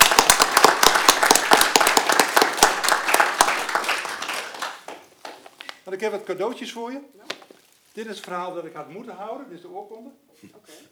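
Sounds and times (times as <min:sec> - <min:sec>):
applause: 0:00.0 - 0:05.8
speech: 0:06.0 - 0:07.3, 0:08.0 - 0:10.8.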